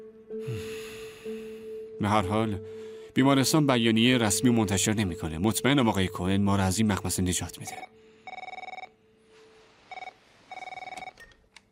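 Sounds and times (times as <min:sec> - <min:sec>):
speech: 0:02.0 - 0:08.0
telephone ringing with an incoming outside call: 0:07.6 - 0:09.0, 0:09.9 - 0:11.3.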